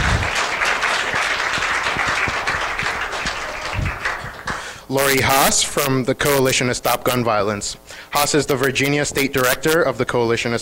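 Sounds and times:
audience applause: 0.0 - 4.8
speech: 4.9 - 10.6.

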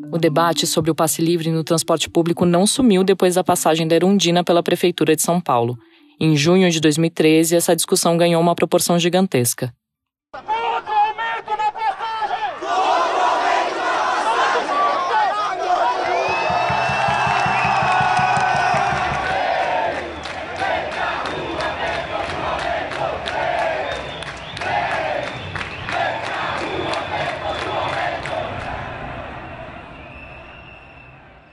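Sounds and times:
speech: 0.2 - 10.9
protest crowd shouting and cheering in São Paulo: 10.4 - 31.4.

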